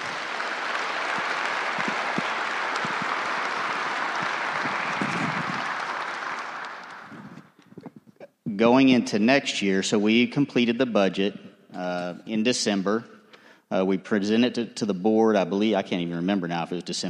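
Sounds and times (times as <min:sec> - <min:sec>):
applause: 0:00.0 - 0:08.0
speech: 0:08.6 - 0:17.0.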